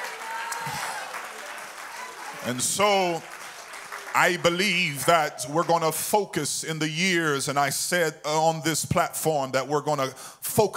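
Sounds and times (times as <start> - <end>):
audience clapping hands: 0.0 - 6.4
speech: 2.4 - 3.3, 4.2 - 10.7.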